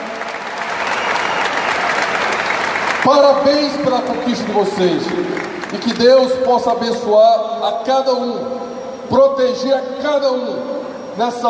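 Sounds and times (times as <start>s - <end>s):
round of applause: 0.0s - 6.7s
speech: 3.1s - 11.4s.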